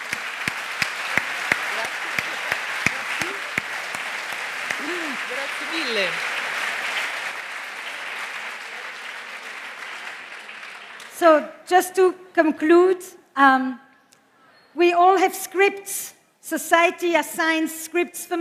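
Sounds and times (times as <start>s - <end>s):
audience applause: 0.0s - 11.2s
speech: 5.5s - 6.3s, 11.2s - 13.8s, 14.8s - 18.3s.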